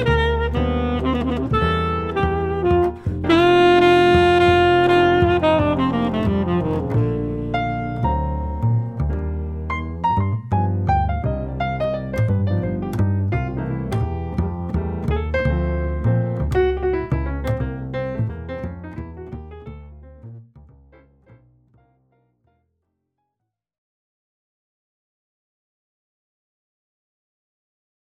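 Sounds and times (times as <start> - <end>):
jazz ensemble playing: 0.0 - 20.2.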